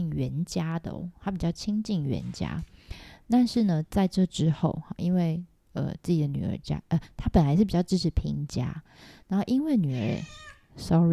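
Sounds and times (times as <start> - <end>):
speech: 0.2 - 11.1
house cat meowing: 10.0 - 10.6.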